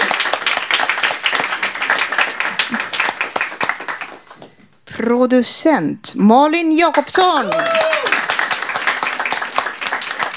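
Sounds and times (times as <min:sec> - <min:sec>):
crowd applause: 0:00.0 - 0:04.5, 0:07.4 - 0:10.3
speech: 0:05.0 - 0:08.1.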